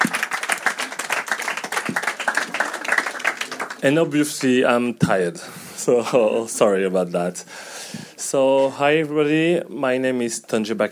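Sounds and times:
audience applause: 0.0s - 4.7s
speech: 1.9s - 2.6s, 3.8s - 10.8s.

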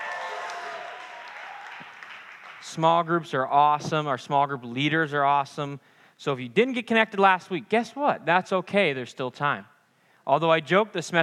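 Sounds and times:
audience yelling and cheering: 0.0s - 2.1s
speech: 2.6s - 9.7s, 10.3s - 11.2s.

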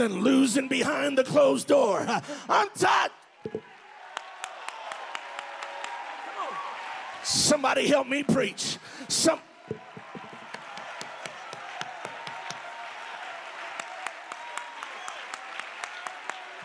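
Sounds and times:
speech: 0.0s - 3.7s, 7.2s - 9.5s
audience clapping hands: 3.6s - 7.2s, 9.8s - 16.6s.

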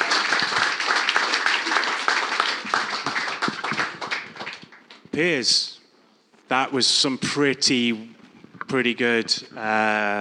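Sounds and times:
audience applause: 0.0s - 5.0s
speech: 5.2s - 5.7s, 6.5s - 10.1s.

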